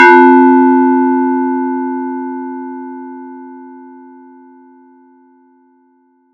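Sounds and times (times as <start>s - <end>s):
random bell sound effect: 0.0s - 3.6s.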